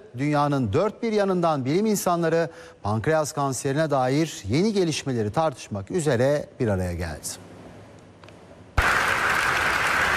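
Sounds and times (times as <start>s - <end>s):
speech: 0.2s - 7.5s
scientists applauding pancreatic cancer drug results: 8.8s - 10.1s.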